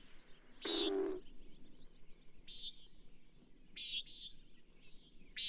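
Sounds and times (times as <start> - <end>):
bird rasping high buzzes: 0.6 - 1.2.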